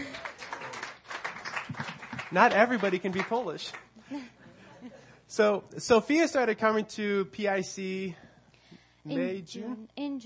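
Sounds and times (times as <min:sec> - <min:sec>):
crowd clapping: 0:00.0 - 0:04.0
speech: 0:02.3 - 0:08.2, 0:09.0 - 0:10.2
laughter: 0:04.0 - 0:05.3.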